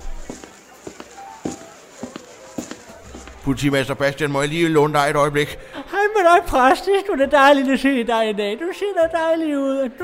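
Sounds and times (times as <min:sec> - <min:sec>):
footsteps crossing a room at a social gathering: 0:00.0 - 0:03.6
speech: 0:03.4 - 0:10.0.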